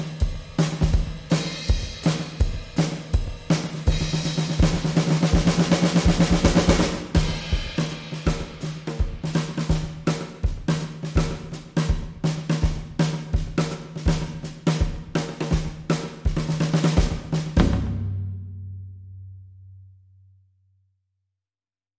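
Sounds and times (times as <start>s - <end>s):
clean drums: 0.0s - 19.9s.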